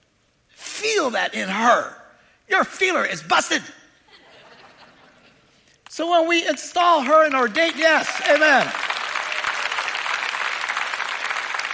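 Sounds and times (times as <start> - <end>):
speech: 0.8 - 3.8, 6.0 - 8.8
laughter: 4.1 - 5.6
audience clapping: 5.8 - 11.7.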